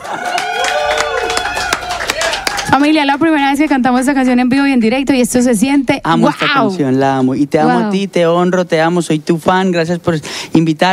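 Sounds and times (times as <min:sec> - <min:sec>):
audience applause: 0:00.0 - 0:03.1
speech: 0:02.7 - 0:10.9.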